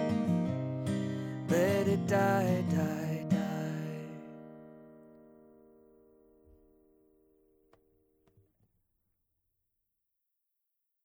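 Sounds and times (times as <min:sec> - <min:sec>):
music recorded with Apogee MiC Plus USB mic: 0:00.0 - 0:07.8.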